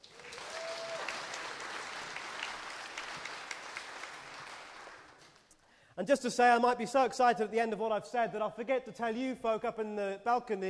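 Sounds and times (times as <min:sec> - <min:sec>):
audience applauding: 0:00.0 - 0:05.5
speech: 0:06.0 - 0:10.6.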